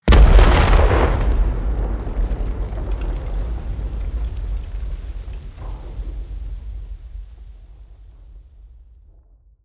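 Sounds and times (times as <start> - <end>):
detonation: 0.1 - 7.9.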